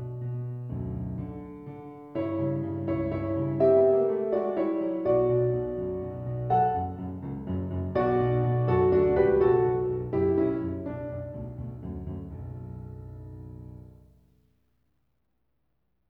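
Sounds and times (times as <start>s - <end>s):
piano piece: 0.0s - 14.2s.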